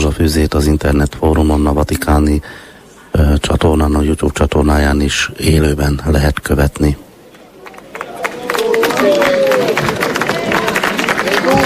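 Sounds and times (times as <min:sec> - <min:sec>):
speech: 0:00.2 - 0:07.0, 0:09.0 - 0:09.3
large crowd applause: 0:07.6 - 0:11.6.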